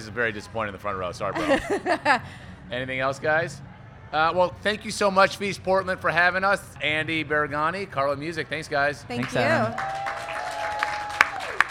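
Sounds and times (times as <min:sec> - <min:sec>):
speech: 0:00.0 - 0:10.0
laughter: 0:01.4 - 0:02.4
crowd applauding and cheering: 0:09.2 - 0:11.6.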